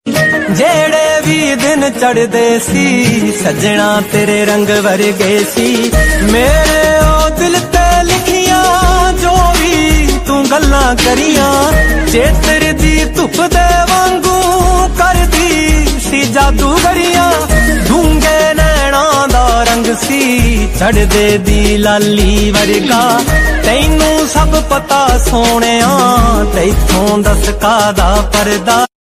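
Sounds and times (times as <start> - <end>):
new Punjabi love song ringtone: 0.1 - 28.9.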